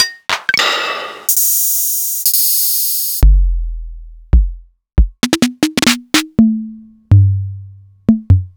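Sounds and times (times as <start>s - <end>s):
Korg Volca Beats drum machine beat: 1.3s - 7.5s, 8.1s - 8.5s.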